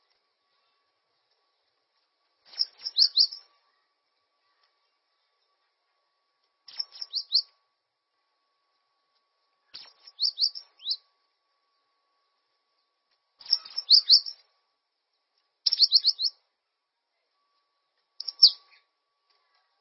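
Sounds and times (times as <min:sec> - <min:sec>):
bird song of fast high chirps and trills: 0:02.4 - 0:03.8, 0:06.6 - 0:07.6, 0:09.6 - 0:12.0, 0:12.8 - 0:14.5, 0:15.6 - 0:16.4, 0:18.2 - 0:19.0.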